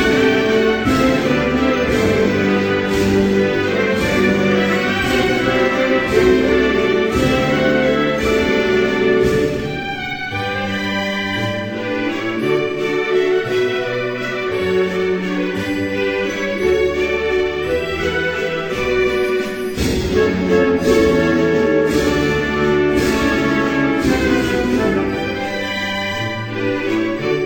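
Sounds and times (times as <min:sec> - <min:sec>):
national anthem: 0:00.0 - 0:27.4.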